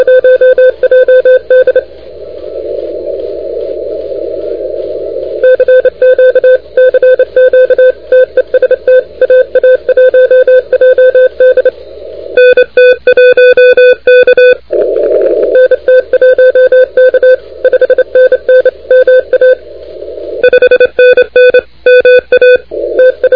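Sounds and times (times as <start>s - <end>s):
CW Morse code on 28MHz: 0.0s - 1.9s, 5.4s - 11.7s, 12.4s - 19.6s, 20.4s - 23.3s.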